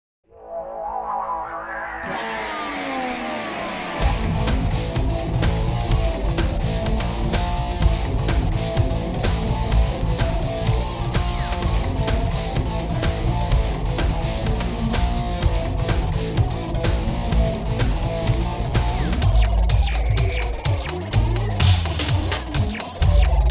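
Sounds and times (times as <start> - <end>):
intro music: 0.4 - 23.4.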